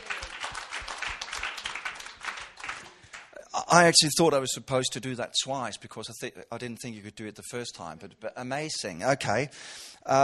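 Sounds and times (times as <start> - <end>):
audience applause at a presentation: 0.0 - 3.3
speech: 3.7 - 10.2.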